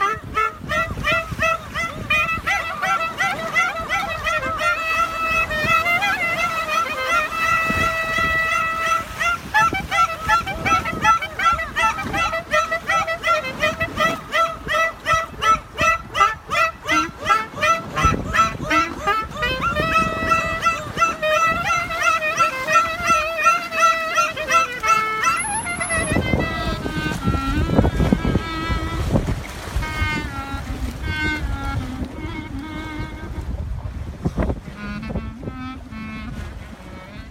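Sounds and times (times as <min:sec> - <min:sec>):
dolphins vocalizing: 0:00.0 - 0:28.4
man playing klezmer music to dolphins: 0:00.0 - 0:37.2.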